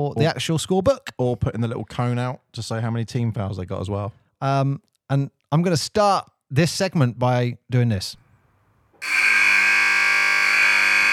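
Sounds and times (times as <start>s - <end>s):
speech: 0.0s - 8.2s, 9.0s - 9.3s
long basketball buzzer: 9.0s - 11.1s.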